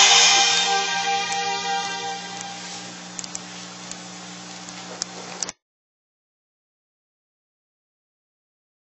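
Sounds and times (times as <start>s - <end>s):
drums: 0.0s - 3.5s.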